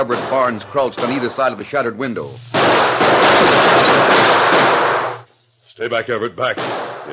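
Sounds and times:
volley of gunshots: 0:00.0 - 0:01.8, 0:02.5 - 0:05.2, 0:06.4 - 0:07.1
speech: 0:00.0 - 0:04.2, 0:05.8 - 0:07.1.

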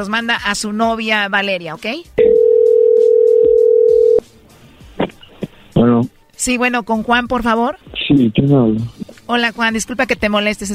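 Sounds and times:
speech: 0:00.0 - 0:02.3, 0:05.8 - 0:10.7
telephone ringing tone of outgoing call: 0:02.2 - 0:04.2.

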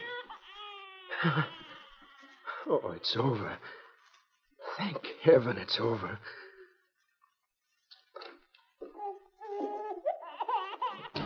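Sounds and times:
plaintive muffled wail of a newborn baby boy: 0:00.0 - 0:02.7, 0:08.8 - 0:11.2
speech: 0:01.2 - 0:01.6, 0:02.6 - 0:03.8, 0:04.8 - 0:06.4.

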